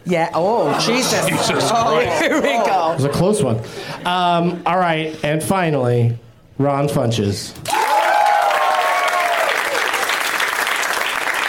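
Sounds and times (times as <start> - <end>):
speech: 0.1 - 7.8
laughter: 0.5 - 3.6
crowd clapping: 7.6 - 11.4
whistles and whoops: 7.7 - 9.9.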